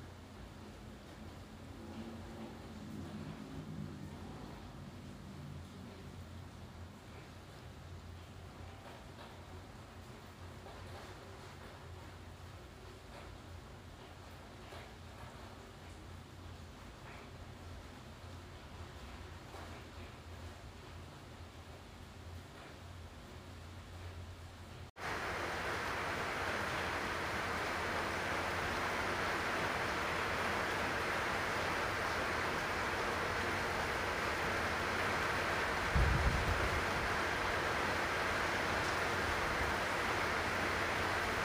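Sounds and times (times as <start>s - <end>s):
rain: 0.0s - 41.4s.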